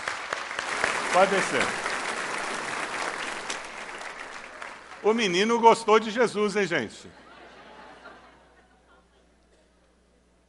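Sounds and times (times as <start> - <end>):
audience applause: 0.0 - 5.7
speech: 1.2 - 1.8, 5.0 - 7.2
laughter: 6.9 - 9.5.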